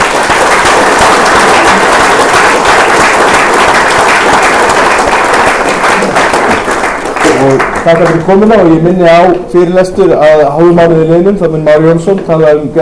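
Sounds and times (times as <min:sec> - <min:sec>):
audience applause after a lecture: 0:00.0 - 0:08.5
speech: 0:07.5 - 0:12.8.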